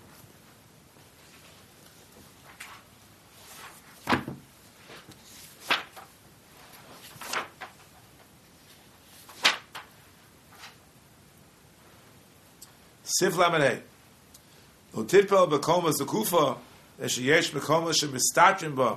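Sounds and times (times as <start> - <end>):
Shulchan Aruch book handled and opened: 2.0 - 8.0, 9.2 - 9.9
speech: 13.1 - 13.9, 15.1 - 18.9.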